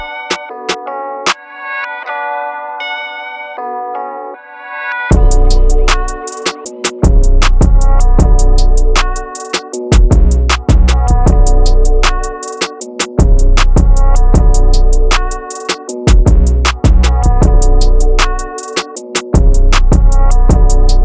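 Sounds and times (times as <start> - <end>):
boosted bass: 5.1 - 6.2, 7.0 - 9.3, 9.9 - 12.3, 13.2 - 15.4, 16.1 - 18.5, 19.4 - 21.0.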